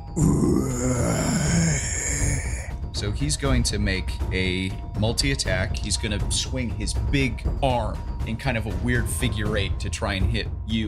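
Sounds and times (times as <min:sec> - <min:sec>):
man's voice imitating a deep feral animal growl: 0:00.1 - 0:02.7
speech: 0:00.2 - 0:01.3, 0:03.0 - 0:10.8.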